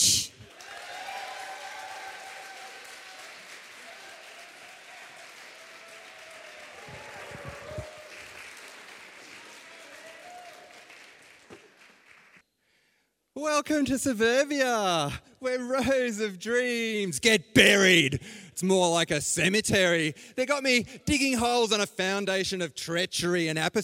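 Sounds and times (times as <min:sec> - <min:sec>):
audience applause: 0:00.4 - 0:12.4
speech: 0:13.4 - 0:23.8.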